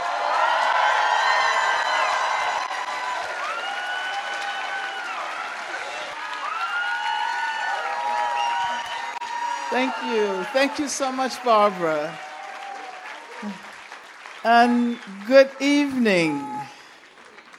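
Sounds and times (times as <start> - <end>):
cheers and whoops: 0.0 - 13.7
audience applause in Chicago: 0.0 - 17.5
speech: 9.7 - 12.2, 13.4 - 13.7, 14.4 - 16.8.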